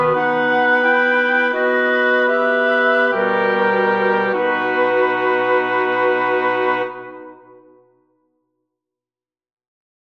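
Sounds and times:
chorale for woodwind quartet: 0:00.0 - 0:07.8.

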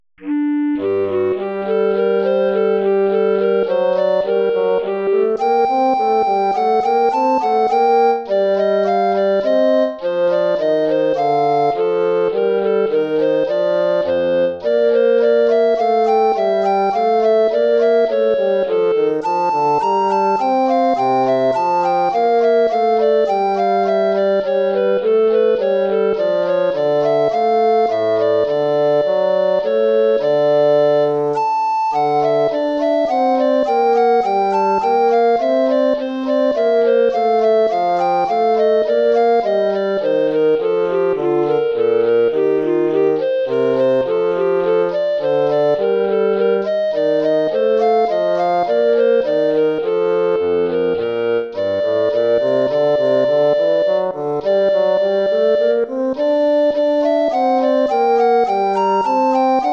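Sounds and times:
baroque dance piece: 0:00.2 - 0:59.7.

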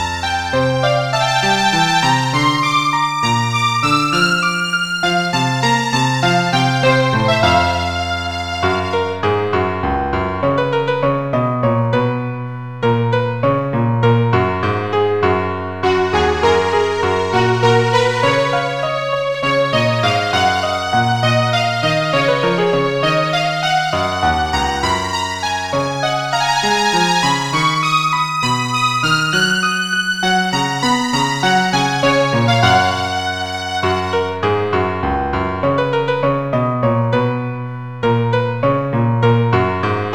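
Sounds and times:
violin playing: 0:00.0 - 0:09.7, 0:15.8 - 0:34.8
piano playing: 0:00.0 - 0:40.1.

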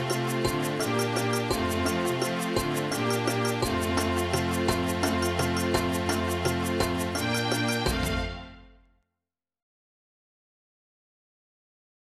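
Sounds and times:
Igbo folk music: 0:00.0 - 0:08.8.

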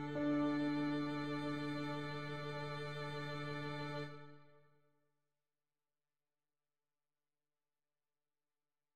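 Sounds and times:
keyboard: 0:00.0 - 0:04.4
strings: 0:00.0 - 0:04.5.

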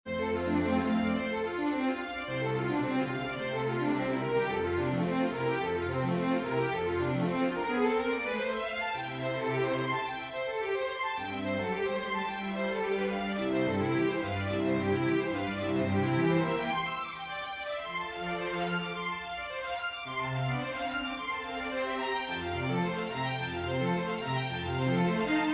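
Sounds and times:
prelude in a major key for string quartet: 0:00.1 - 0:25.5.

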